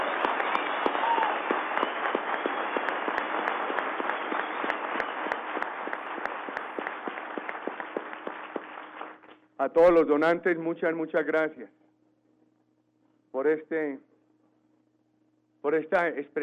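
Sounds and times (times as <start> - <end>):
audience applause: 0.0 - 9.3
speech: 9.6 - 11.8, 13.4 - 14.1, 15.6 - 16.4.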